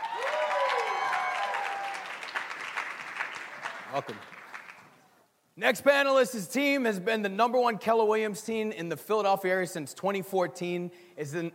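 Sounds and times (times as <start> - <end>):
audience applause welcoming a panelist on stage at a business summit: 0.0 - 5.0
speech: 3.9 - 4.4, 5.6 - 11.5.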